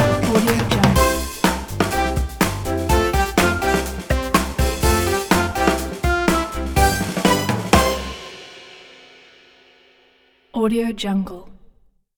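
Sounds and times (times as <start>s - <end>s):
kids game show opener music: 0.0s - 9.4s.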